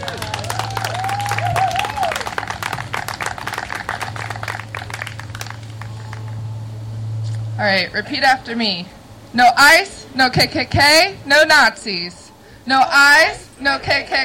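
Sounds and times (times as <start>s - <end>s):
crowd applause: 0.0s - 6.4s
speech: 7.6s - 14.2s.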